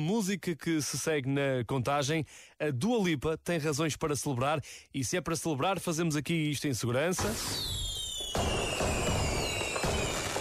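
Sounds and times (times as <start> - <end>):
speech: 0.0 - 7.8
fireworks: 7.2 - 10.3.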